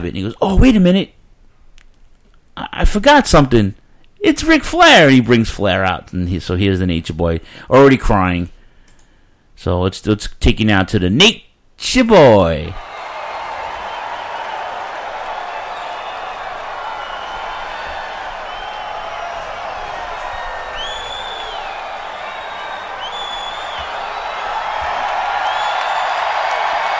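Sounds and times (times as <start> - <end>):
speech: 0.0 - 1.2, 2.8 - 8.6, 9.6 - 12.9
packed wrestling arena crowd cheering: 12.8 - 26.9
whistles and whoops from arena crowd: 12.8 - 26.9.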